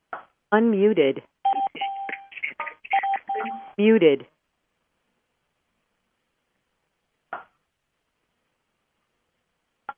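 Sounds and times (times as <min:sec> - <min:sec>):
speech: 0:00.1 - 0:01.3, 0:03.8 - 0:04.3
telephone keypad dialing tones: 0:01.5 - 0:02.3, 0:02.9 - 0:03.7.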